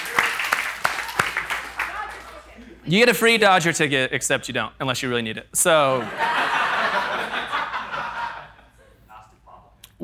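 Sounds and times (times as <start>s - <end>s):
audience applause: 0.0s - 2.5s
speech: 2.8s - 6.4s
laughter: 5.9s - 9.7s.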